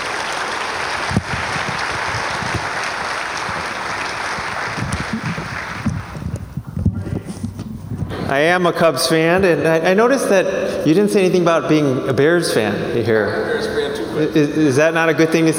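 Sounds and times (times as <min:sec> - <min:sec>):
round of applause: 0:00.0 - 0:06.8
speech: 0:08.3 - 0:15.5.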